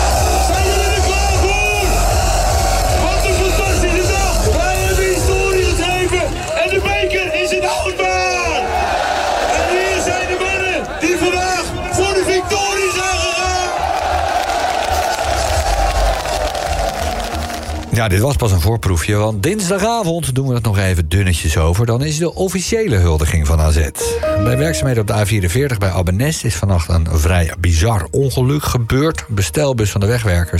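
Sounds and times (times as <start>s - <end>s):
Alkmaar football fans roaring at the stadium after a cup win: 0.0s - 17.5s
speech: 18.0s - 30.5s.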